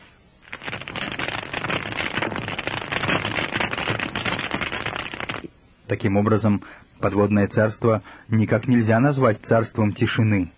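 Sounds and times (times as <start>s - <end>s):
snapping shrimp crackling picked up by a hydrophone: 0.5s - 5.5s
speech: 5.9s - 10.5s.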